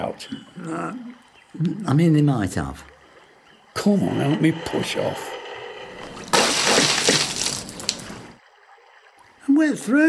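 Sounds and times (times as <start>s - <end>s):
speech: 0.0s - 2.9s, 3.8s - 5.4s, 9.6s - 10.0s
person jumping into a river, splash: 6.0s - 8.4s.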